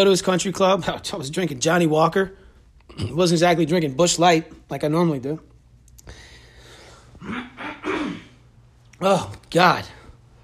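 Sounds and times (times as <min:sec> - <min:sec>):
speech: 0:00.0 - 0:05.5, 0:09.0 - 0:10.0
man clearing his throat: 0:02.9 - 0:03.3, 0:07.2 - 0:08.4.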